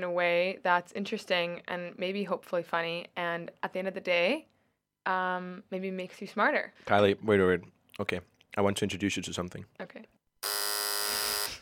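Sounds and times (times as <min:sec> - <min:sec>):
speech: 0:00.0 - 0:10.6
electric buzzer: 0:10.4 - 0:11.5.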